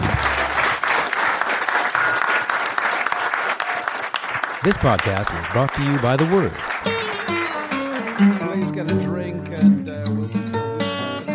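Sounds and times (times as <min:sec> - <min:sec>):
audience applause: 0:00.0 - 0:09.0
speech: 0:04.6 - 0:06.7, 0:08.2 - 0:10.6.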